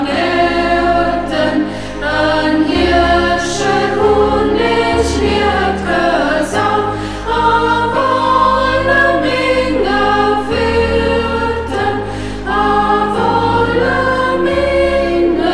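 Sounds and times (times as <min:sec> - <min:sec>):
choir singing in Burgberg local dialect: 0:00.0 - 0:15.5.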